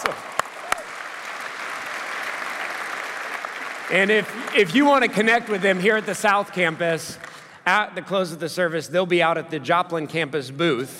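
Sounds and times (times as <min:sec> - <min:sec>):
audience applause: 0:00.0 - 0:06.8
speech: 0:03.9 - 0:10.9.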